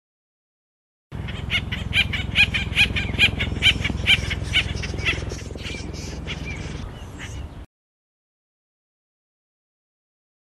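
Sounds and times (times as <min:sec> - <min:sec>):
Acorn woodpecker calling in harsh repeated notes: 0:01.2 - 0:07.6.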